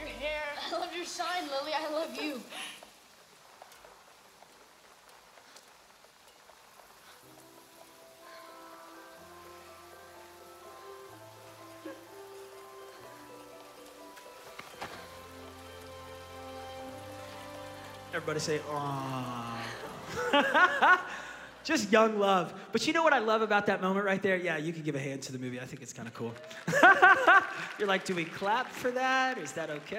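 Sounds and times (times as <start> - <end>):
rain pattering: 0.0 - 29.9
speech: 1.2 - 2.8, 18.2 - 19.4, 20.1 - 29.9
soft sustained musical notes: 7.3 - 21.6
laughter: 18.8 - 21.6, 26.5 - 28.2.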